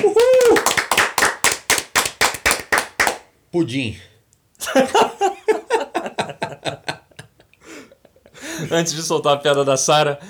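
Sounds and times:
applause: 0.0s - 3.3s
speech: 3.6s - 5.4s, 8.6s - 10.2s
laughter: 4.6s - 8.8s.

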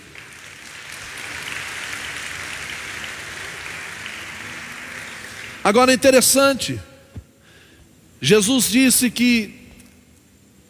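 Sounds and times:
audience applauding: 0.0s - 6.4s
speech: 5.7s - 6.9s, 8.2s - 9.6s.

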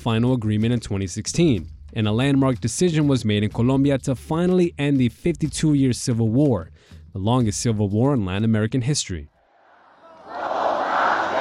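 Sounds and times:
speech: 0.0s - 9.3s
crowd of men and women chanting a slogan: 9.5s - 11.4s.

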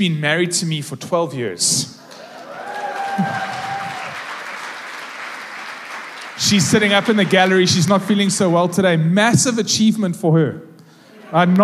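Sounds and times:
speech: 0.0s - 2.0s, 3.2s - 3.7s, 6.4s - 10.7s, 11.3s - 11.6s
audience applause: 2.1s - 8.6s.

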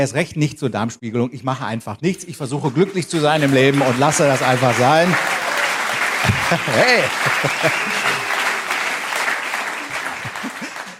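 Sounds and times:
speech: 0.0s - 5.4s, 6.5s - 7.9s
audience applause: 2.6s - 10.9s
laughter: 2.7s - 10.9s.

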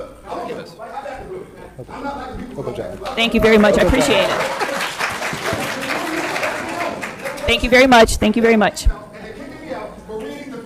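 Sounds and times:
speech: 0.5s - 4.6s, 7.5s - 9.0s
laughter: 1.6s - 7.5s
audience applause at a school board meeting: 3.0s - 7.6s.

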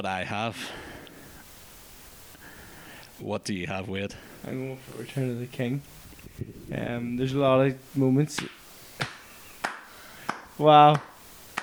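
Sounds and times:
speech: 0.0s - 0.9s, 3.2s - 8.6s, 10.6s - 11.1s
quiet hiss: 0.0s - 11.6s
single person clapping hands: 8.3s - 11.6s.

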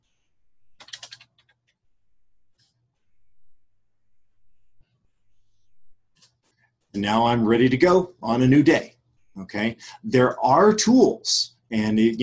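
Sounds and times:
typing a date on a computer keyboard: 0.8s - 1.8s
low steady hum: 1.8s - 12.2s
speech: 6.9s - 12.2s.

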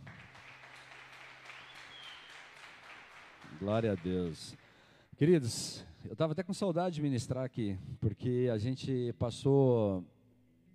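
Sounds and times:
audience applause: 0.0s - 4.6s
speech: 3.6s - 4.6s, 5.2s - 10.2s.

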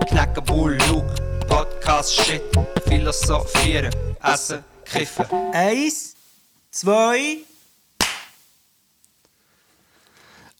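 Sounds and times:
speech: 0.1s - 1.2s, 1.9s - 6.1s, 6.8s - 7.5s
hand clap: 8.0s - 8.4s.

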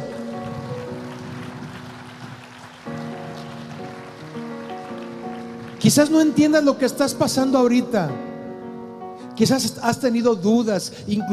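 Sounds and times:
audience applause: 0.0s - 6.8s
speech: 5.8s - 8.3s, 9.4s - 11.3s.

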